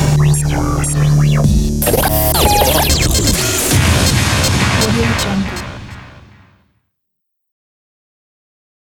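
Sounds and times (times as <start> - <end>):
radio jingle ident: 0.5 - 6.6.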